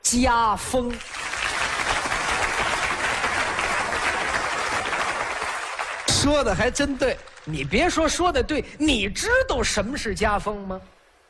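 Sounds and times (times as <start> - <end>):
speech: 0.1 - 1.2, 6.2 - 11.0
crowd applauding: 0.7 - 8.2.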